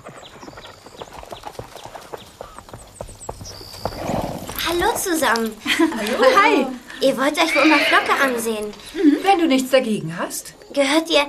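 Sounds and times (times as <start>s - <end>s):
faint bird chirps: 0.0s - 4.8s
horse hooves clip-clopping as a girl rides: 0.0s - 9.5s
speech: 4.7s - 11.2s
laughter: 5.6s - 7.0s.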